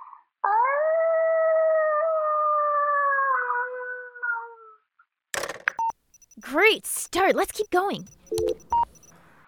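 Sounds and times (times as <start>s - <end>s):
child imitating a wolf howl: 0.0s - 4.9s
speech: 6.4s - 8.8s.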